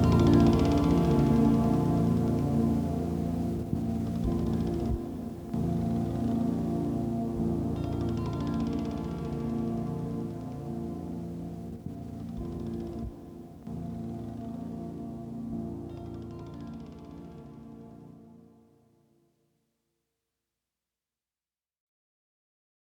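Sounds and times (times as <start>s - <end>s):
autoharp: 0.0s - 18.1s.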